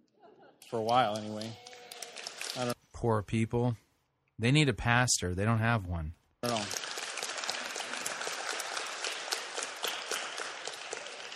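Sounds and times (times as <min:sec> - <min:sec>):
audience applause: 0:00.6 - 0:02.8, 0:06.4 - 0:11.3
speech: 0:00.7 - 0:01.6, 0:02.6 - 0:03.8, 0:04.4 - 0:06.8.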